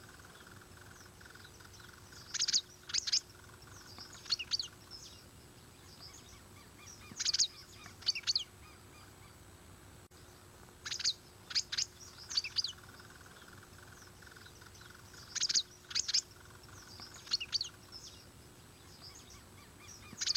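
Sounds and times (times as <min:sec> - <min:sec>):
dragon bird song high chirps: 0:00.0 - 0:09.4, 0:10.2 - 0:20.3.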